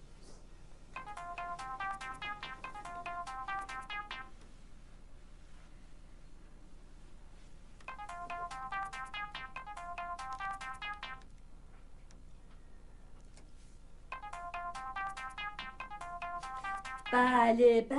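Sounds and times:
telephone ringing with melodic ringtone: 1.0s - 4.3s, 7.9s - 11.2s, 14.1s - 17.2s
speech: 17.1s - 17.9s.

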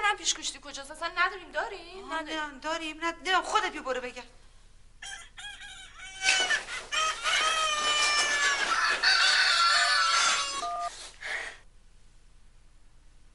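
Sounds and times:
speech: 0.2s - 4.4s
mobile phone ringtone of rooster crowing and clucking: 5.0s - 11.0s.

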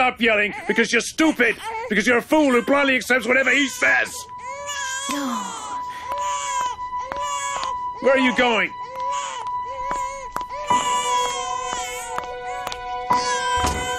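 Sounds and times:
speech: 0.1s - 5.6s, 8.0s - 8.8s
baby crying: 0.3s - 13.9s.

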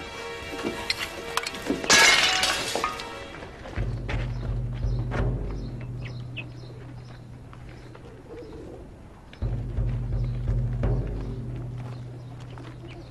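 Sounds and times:
low steady hum: 0.3s - 13.0s
clay water pot smashing: 1.8s - 3.2s
faint bird coos: 7.8s - 9.1s, 12.6s - 13.0s.

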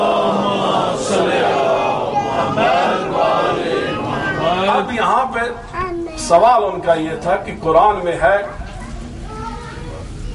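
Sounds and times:
crowd chanting salawat at a religious gathering: 0.0s - 5.4s
speech: 5.2s - 8.6s.

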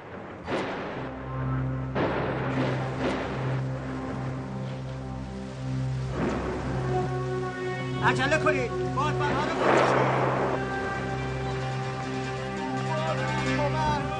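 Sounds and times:
storm rain: 0.0s - 14.1s
speech: 8.1s - 10.2s.

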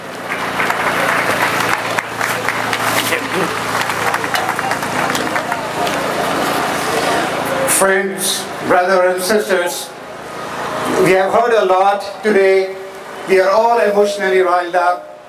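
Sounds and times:
crowd clapping at an Al-Quds Day rally: 0.0s - 7.6s
crowd noise: 0.0s - 15.2s
speech: 7.8s - 10.0s, 10.9s - 15.1s.

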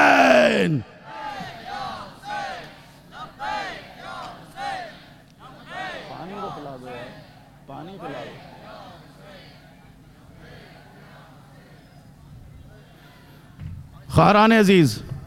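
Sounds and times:
crowd of men and women chanting a slogan at a Muharram mourning gathering: 0.0s - 11.9s
speech: 14.2s - 15.1s.

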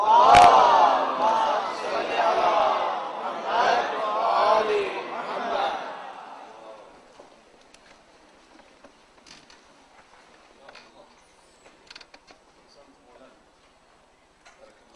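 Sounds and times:
crowd at a conference chanting a loud salawat in unison: 0.0s - 7.1s.

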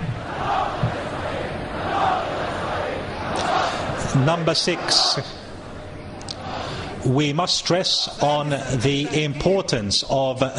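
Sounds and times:
crowd chanting a slogan: 0.0s - 5.6s
speech: 4.2s - 5.4s, 7.0s - 10.5s.

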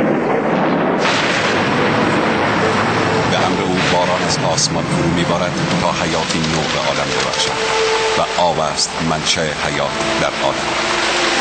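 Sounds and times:
thunder: 0.0s - 8.3s
speech: 4.3s - 11.3s.

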